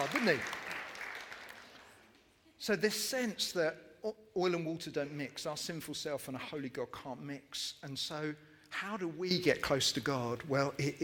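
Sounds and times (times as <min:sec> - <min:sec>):
speech: 0:00.0 - 0:00.6, 0:02.6 - 0:11.0
audience applause: 0:00.0 - 0:02.0.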